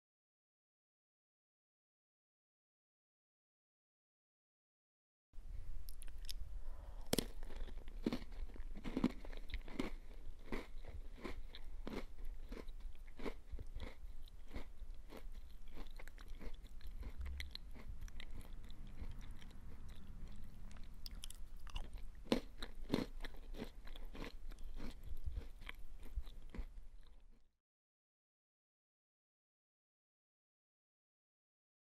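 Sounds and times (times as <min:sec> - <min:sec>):
person eating cookies: 0:05.8 - 0:27.5.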